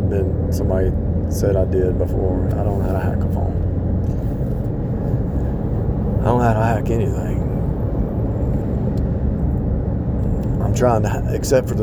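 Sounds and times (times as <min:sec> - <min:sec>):
J.B. Hunt trucks driving past: 0:00.0 - 0:11.8
speech: 0:00.1 - 0:04.2, 0:06.2 - 0:07.5, 0:10.7 - 0:11.8.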